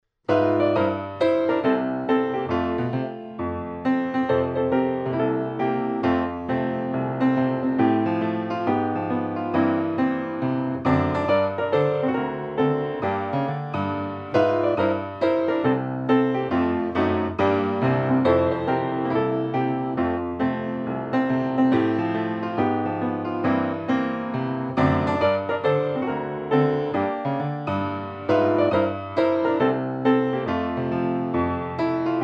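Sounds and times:
piano: 0:00.0 - 0:32.2.

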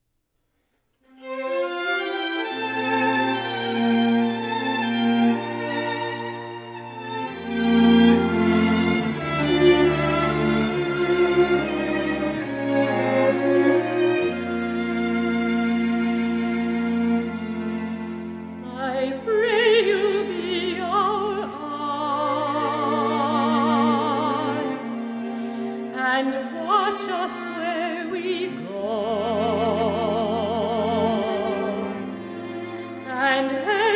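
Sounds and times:
string quartet: 0:01.1 - 0:33.9.

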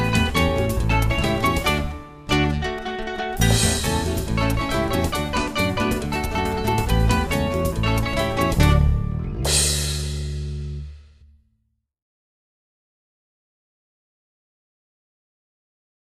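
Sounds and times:
acoustic guitar: 0:00.0 - 0:10.8.

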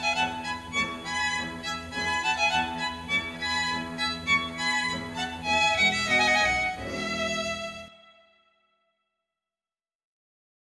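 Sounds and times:
string quartet playing a trio: 0:00.0 - 0:08.0.

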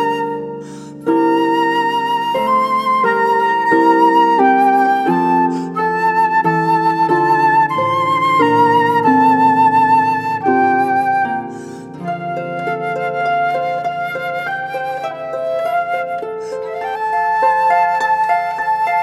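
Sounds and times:
flute: 0:00.0 - 0:19.0
harp: 0:00.0 - 0:19.0.

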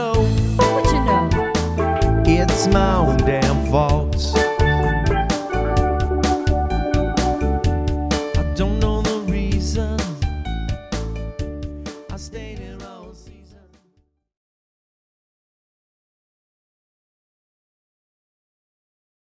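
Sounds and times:
steel drum variety band playing: 0:00.2 - 0:12.0.

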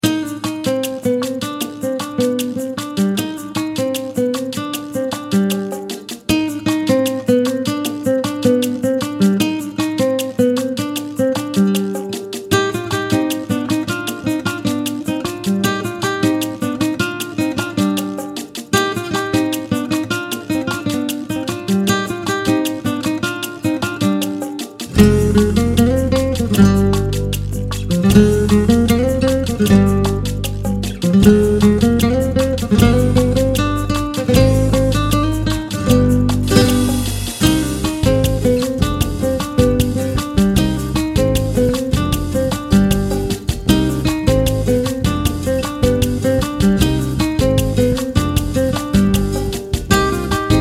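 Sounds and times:
acoustic guitar: 0:00.0 - 0:50.5.

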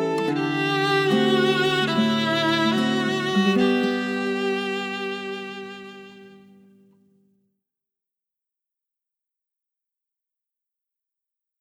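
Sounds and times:
classical guitar: 0:00.0 - 0:07.2.

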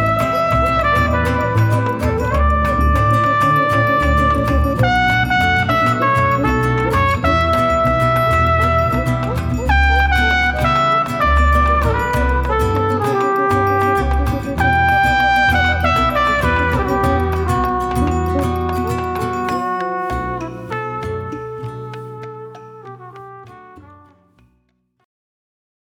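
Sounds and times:
Latin bossa samba music: 0:00.0 - 0:24.4.

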